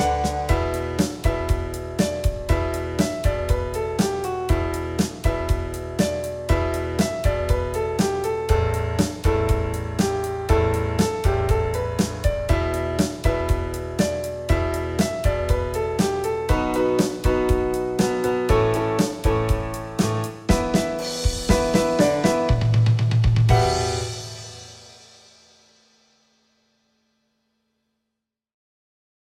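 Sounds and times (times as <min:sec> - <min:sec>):
piano: 0:00.0 - 0:25.4
percussion: 0:00.0 - 0:25.7.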